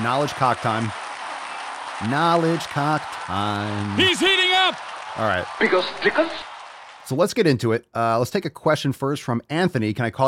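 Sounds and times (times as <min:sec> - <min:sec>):
speech: 0:00.0 - 0:01.0, 0:02.0 - 0:06.5, 0:07.1 - 0:10.2
applause: 0:00.0 - 0:07.4.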